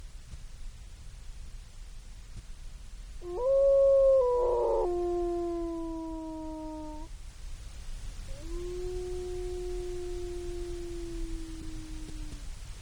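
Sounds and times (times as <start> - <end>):
solitary wolf howling with vocal cracking: 3.2 - 7.1, 8.3 - 12.4.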